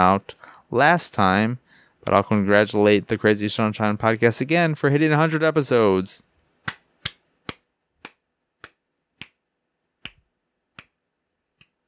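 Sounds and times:
speech: 0.0s - 6.8s
one person clapping hands enthusiastically: 6.6s - 9.4s, 10.0s - 11.0s.

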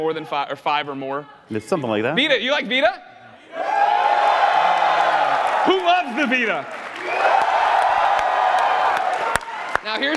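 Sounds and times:
speech: 0.0s - 4.4s, 5.6s - 7.4s, 9.8s - 10.1s
large crowd cheering and yelling: 3.5s - 10.1s
sharp claps and whoops: 3.8s - 10.1s.

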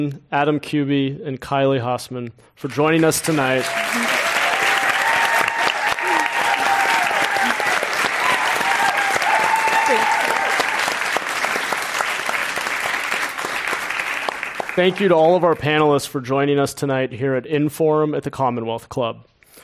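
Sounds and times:
speech: 0.0s - 4.2s, 14.8s - 19.3s
audience applause: 2.9s - 15.4s.

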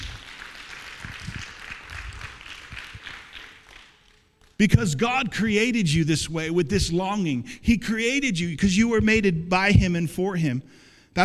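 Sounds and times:
audience clapping: 0.0s - 5.0s
speech: 4.6s - 11.2s.

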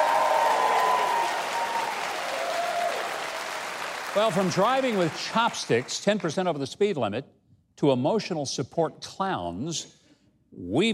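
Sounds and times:
audience clapping and cheering for a band: 0.0s - 6.5s
speech: 4.2s - 10.9s.

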